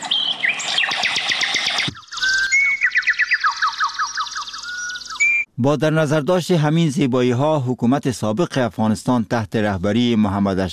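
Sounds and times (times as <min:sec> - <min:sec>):
birds singing: 0:00.0 - 0:05.5
speech: 0:05.6 - 0:10.7.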